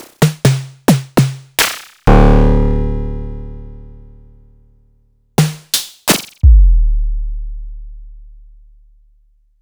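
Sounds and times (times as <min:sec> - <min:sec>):
sliced samples from Noise Engineering Basimilus Iteritas synthesizer: 0:00.2 - 0:04.4, 0:06.4 - 0:08.2.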